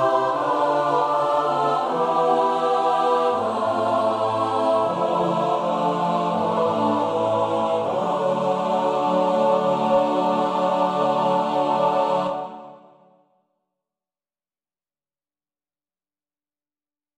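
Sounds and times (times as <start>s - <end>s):
SATB choir singing: 0.0s - 13.1s.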